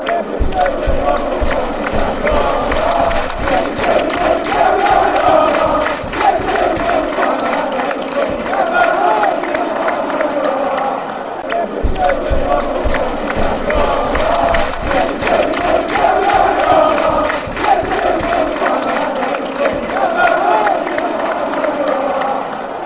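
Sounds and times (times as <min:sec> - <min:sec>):
fans chanting: 0:00.0 - 0:22.8.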